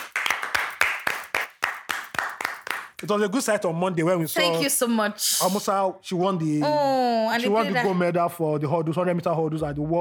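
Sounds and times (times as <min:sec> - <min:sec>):
hand clapping: 0:00.0 - 0:03.1
speech: 0:03.0 - 0:09.9.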